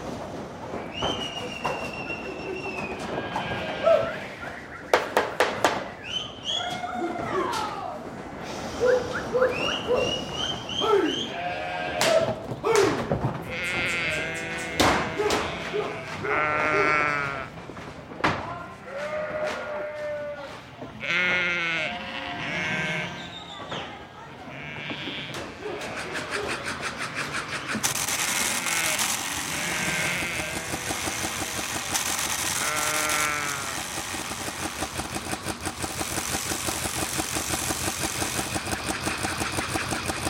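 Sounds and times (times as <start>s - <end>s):
steady wind in Tierra de Fuegos: 0.0s - 40.2s
sheep bleating in Tierra de Fuegos: 3.1s - 4.4s, 11.1s - 12.2s, 13.4s - 17.6s, 18.8s - 23.2s, 24.5s - 26.2s, 28.3s - 33.9s.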